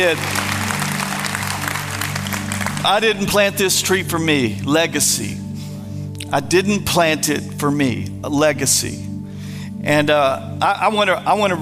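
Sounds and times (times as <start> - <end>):
speech: 0.0 - 0.4, 2.8 - 5.5, 6.3 - 9.1, 9.8 - 11.6
audience applause: 0.0 - 3.0.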